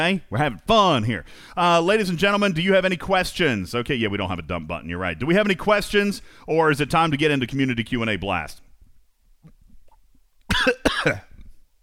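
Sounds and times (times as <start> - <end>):
speech: 0.0 - 8.6, 10.6 - 11.3
harsh coughing after choking: 10.5 - 11.4.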